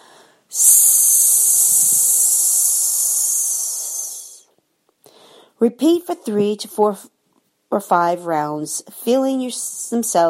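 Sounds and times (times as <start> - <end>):
slow loud hissing exhale: 0.0 - 4.5
speech: 5.6 - 10.2.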